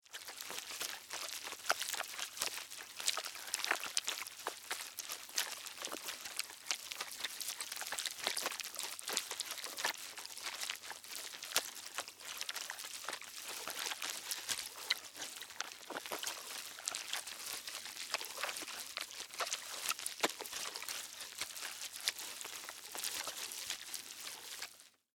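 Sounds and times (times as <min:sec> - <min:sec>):
zombies eating wet flesh: 0:00.0 - 0:25.0.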